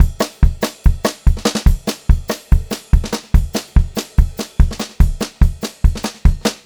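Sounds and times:
pop-rock drum loop at 144 speed: 0:00.0 - 0:06.6.

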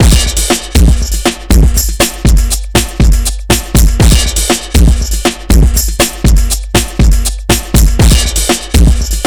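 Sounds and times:
funky hip hop music: 0:00.0 - 0:09.2.

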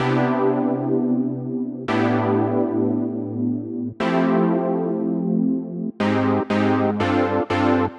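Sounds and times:
synth chords: 0:00.0 - 0:07.9.

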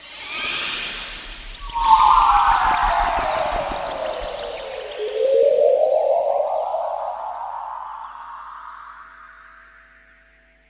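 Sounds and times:
sonic whale sounds: 0:01.6 - 0:09.6.

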